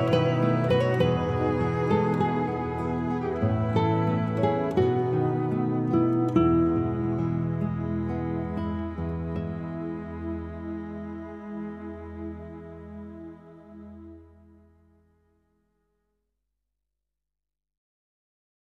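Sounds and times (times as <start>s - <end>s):
acoustic instrumental praise music: 0.0s - 14.2s.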